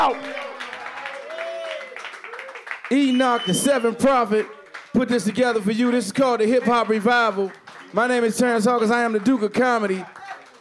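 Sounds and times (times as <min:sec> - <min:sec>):
audience applause: 0:00.0 - 0:10.5
speech: 0:02.9 - 0:10.2.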